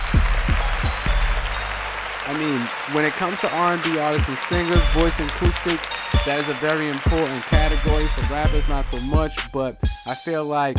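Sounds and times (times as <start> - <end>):
round of applause: 0.0 - 9.5
speech: 2.3 - 10.7.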